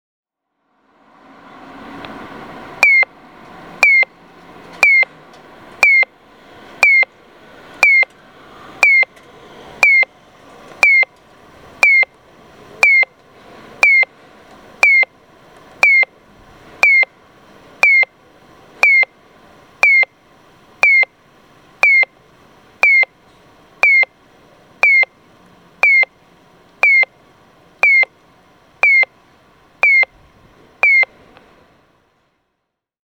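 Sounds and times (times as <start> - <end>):
Kyosan pedestrian crossing signal chirping in Okayama: 2.8 - 3.2, 3.8 - 4.2, 4.8 - 5.2, 5.8 - 6.2, 6.8 - 7.2, 7.8 - 8.1, 8.8 - 9.1, 9.8 - 10.2, 10.8 - 11.1, 11.8 - 12.2, 12.8 - 13.2, 13.8 - 14.1, 14.8 - 15.2, 15.8 - 16.2, 16.8 - 17.2, 17.8 - 18.2, 18.8 - 19.2, 19.8 - 23.2, 23.8 - 30.2, 30.8 - 31.2.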